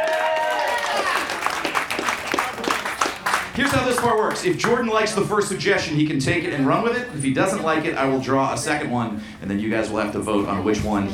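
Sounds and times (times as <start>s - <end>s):
audience applause: 0.0s - 4.8s
speech: 3.6s - 11.1s.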